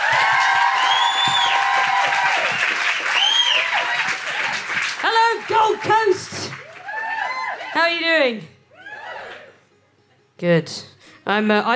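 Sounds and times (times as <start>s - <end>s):
audience whoops and shouts: 0.0s - 4.2s, 6.6s - 7.8s, 8.7s - 9.6s
live-show audience clapping on the Gold Coast: 0.0s - 8.0s
speech: 8.1s - 8.5s, 10.4s - 11.7s.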